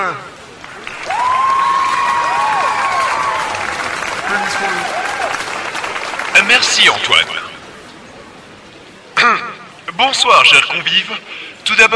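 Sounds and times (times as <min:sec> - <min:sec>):
speech: 0:00.0 - 0:00.4, 0:06.4 - 0:07.4, 0:10.0 - 0:11.9
audience applause: 0:00.5 - 0:07.8.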